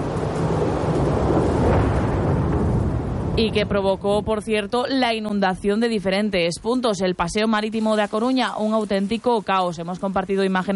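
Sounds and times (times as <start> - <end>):
thunder from a lightning storm: 0.0 - 4.8
speech: 3.4 - 10.7.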